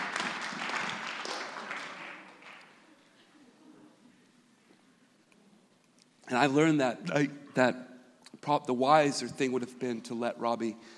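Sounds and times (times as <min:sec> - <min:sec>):
audience clapping: 0:00.0 - 0:02.9
speech: 0:06.3 - 0:10.9.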